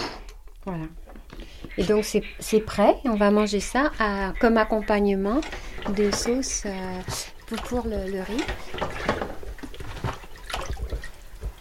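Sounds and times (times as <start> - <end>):
speech: 0.7 - 1.0, 1.8 - 9.2
running water while washing dishes at sink: 2.4 - 11.5.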